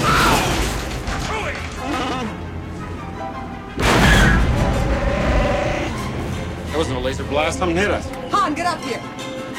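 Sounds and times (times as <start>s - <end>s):
rumbling of the Falcon spaceship lurching: 0.0s - 8.6s
bleat-like vocal sounds: 4.0s - 6.0s
speech: 7.3s - 9.3s.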